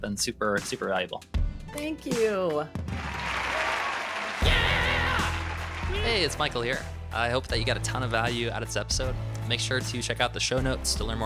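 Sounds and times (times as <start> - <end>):
speech: 0.0 - 3.3, 6.0 - 11.2
virtual round of applause: 2.8 - 6.9.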